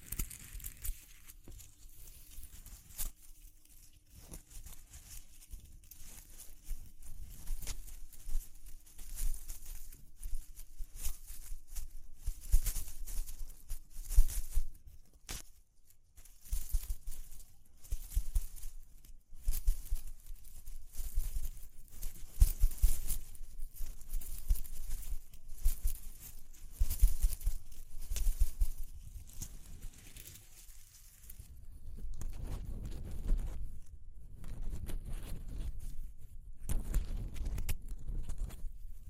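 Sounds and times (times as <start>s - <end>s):
crackling rustling and patter of textures: 0.0s - 39.0s.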